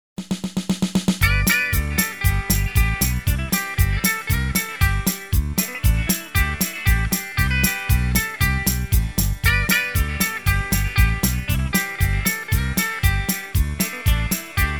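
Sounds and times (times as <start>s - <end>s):
rocking country music: 1.2s - 14.7s.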